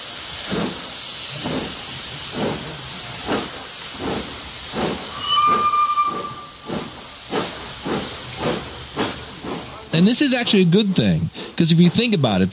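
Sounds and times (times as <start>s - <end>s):
steam locomotive chugging: 0.0s - 12.5s
steam locomotive whistling: 5.1s - 6.7s
speech: 10.0s - 12.5s.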